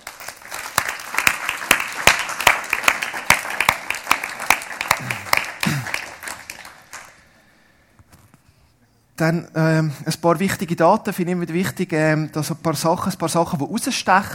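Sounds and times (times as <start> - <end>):
warm audience applause: 0.0 - 7.2
speech: 9.2 - 14.3.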